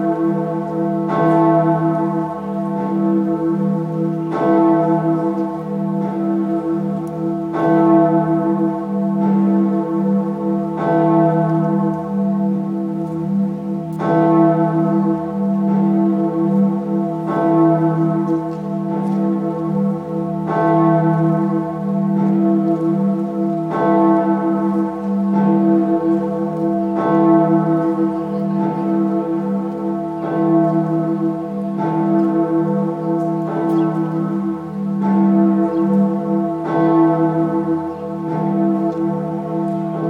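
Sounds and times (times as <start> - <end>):
cathedral bell ringing: 0.0 - 40.0.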